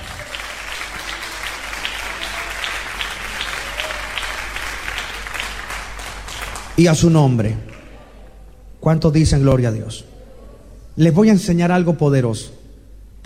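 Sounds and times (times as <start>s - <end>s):
audience applauding: 0.0s - 8.4s
speech: 6.8s - 7.7s, 8.8s - 10.1s, 11.0s - 12.6s.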